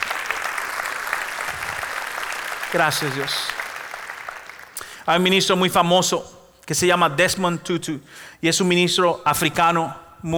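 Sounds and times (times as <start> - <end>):
audience applause: 0.0 - 5.2
speech: 2.7 - 3.6, 5.1 - 10.3.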